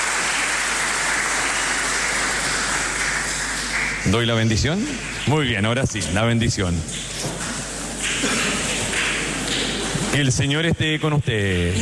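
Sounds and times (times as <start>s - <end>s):
audience applause: 0.0s - 5.4s, 8.0s - 10.4s
speech: 4.0s - 7.5s, 10.2s - 11.8s.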